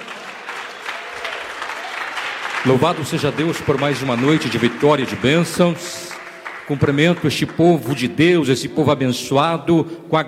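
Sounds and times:
church congregation applauding to welcome the pastor: 0.0s - 8.6s
speech: 2.6s - 6.0s, 6.7s - 10.2s.

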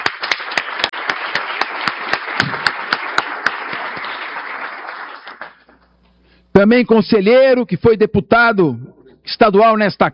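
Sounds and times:
audience applause: 0.0s - 5.8s
speech: 6.6s - 10.1s.

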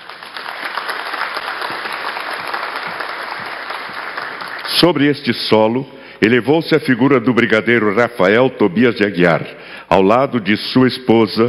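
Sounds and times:
audience applause: 0.0s - 5.2s
speech: 4.8s - 11.4s.

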